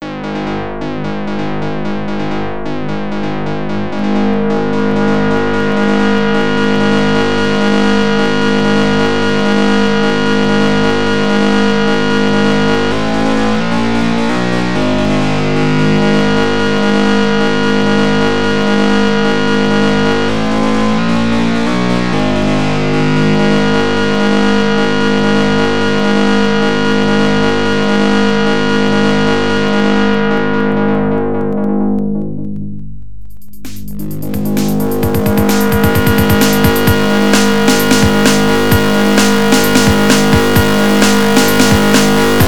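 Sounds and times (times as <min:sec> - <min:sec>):
overdriven distorted sound at 130: 0:00.0 - 0:42.4.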